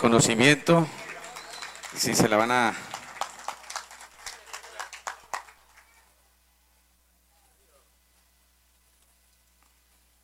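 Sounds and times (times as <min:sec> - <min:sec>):
speech: 0:00.0 - 0:01.0, 0:01.9 - 0:02.9
scattered applause from a small group: 0:00.4 - 0:06.3.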